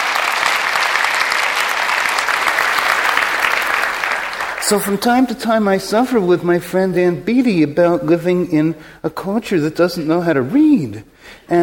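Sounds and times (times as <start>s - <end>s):
audience applause: 0.0s - 5.2s
speech: 4.7s - 11.6s.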